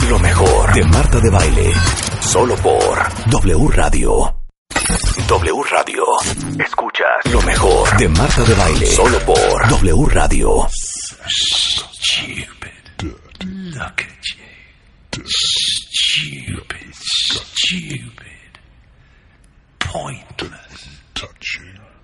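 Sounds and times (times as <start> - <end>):
simulated schizophrenic auditory hallucination: 0.0 - 14.5, 15.1 - 18.2
speech: 0.1 - 14.5, 15.2 - 18.3, 19.9 - 21.8.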